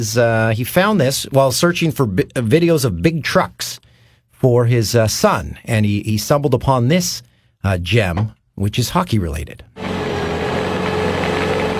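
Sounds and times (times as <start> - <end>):
speech: 0.0 - 3.7, 4.4 - 9.8
ice resurfacer engine running: 9.8 - 11.7.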